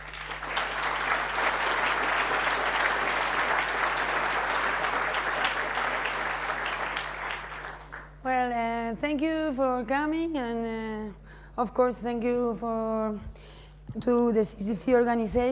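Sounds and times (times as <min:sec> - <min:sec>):
audience applause: 0:00.0 - 0:08.2
speech: 0:09.1 - 0:13.4, 0:14.0 - 0:15.5.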